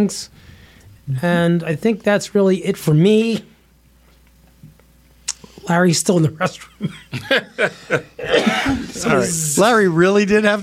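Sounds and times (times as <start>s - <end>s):
speech: 0.0s - 0.5s, 1.1s - 3.5s, 5.6s - 10.6s
laughter: 6.4s - 9.5s
person coughing: 7.9s - 9.1s.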